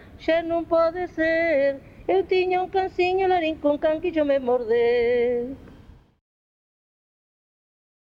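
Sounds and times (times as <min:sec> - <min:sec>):
children's song: 0:00.0 - 0:05.7.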